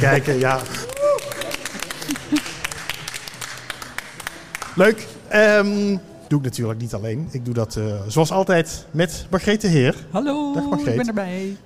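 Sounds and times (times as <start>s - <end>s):
speech: 0.0s - 0.8s, 4.8s - 11.6s
laughter: 0.0s - 2.8s
audience clapping: 0.0s - 5.1s.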